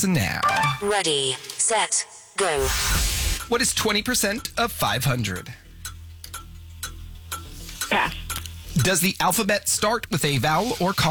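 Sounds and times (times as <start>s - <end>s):
game show countdown clock ticking: 0.0s - 1.1s, 3.4s - 10.2s
speech: 0.0s - 5.6s, 8.8s - 11.0s.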